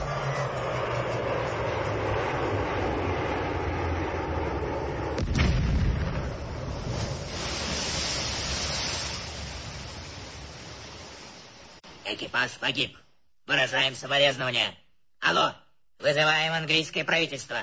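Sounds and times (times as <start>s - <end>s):
torpedo attack sinking a gunboat: 0.0s - 11.8s
speech: 12.1s - 17.6s.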